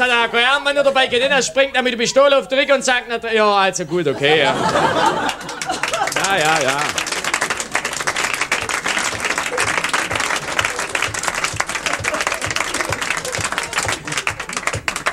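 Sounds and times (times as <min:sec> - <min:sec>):
laughter: 0:00.0 - 0:02.8, 0:03.4 - 0:15.1
speech: 0:00.0 - 0:07.0
audience applause: 0:04.4 - 0:15.1.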